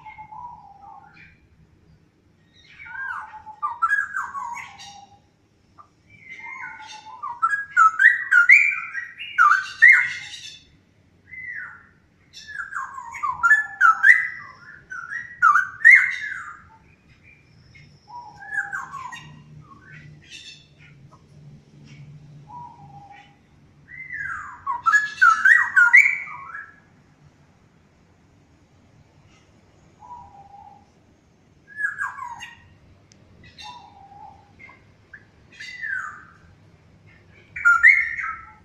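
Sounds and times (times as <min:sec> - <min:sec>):
straw-headed bulbul singing: 0:00.0 - 0:01.5, 0:02.4 - 0:05.3, 0:06.1 - 0:10.7, 0:11.3 - 0:21.0, 0:21.8 - 0:26.9, 0:31.7 - 0:38.6.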